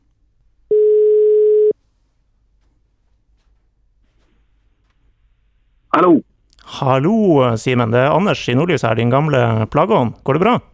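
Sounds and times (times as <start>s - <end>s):
telephone ringback tone while a call is being placed: 0.7s - 1.7s
speech: 6.0s - 10.7s.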